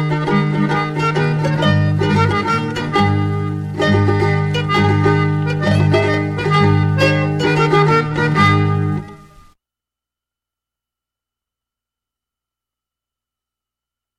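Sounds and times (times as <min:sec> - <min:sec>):
folk dance music: 0:00.0 - 0:09.6.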